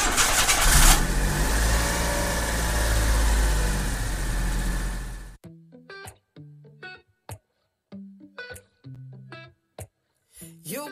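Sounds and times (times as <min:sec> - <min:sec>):
car engine cranking and settling into a low rumble: 0:00.0 - 0:05.4.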